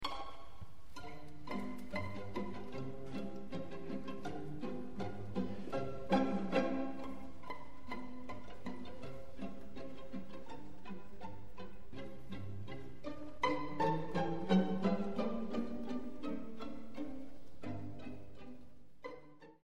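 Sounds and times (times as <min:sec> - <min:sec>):
pizzicato polka: 0:00.0 - 0:19.6.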